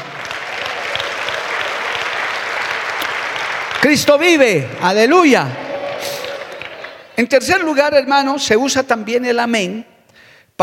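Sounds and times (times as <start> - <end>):
audience applause: 0.0 - 7.2
speech: 3.8 - 5.6, 7.2 - 9.9.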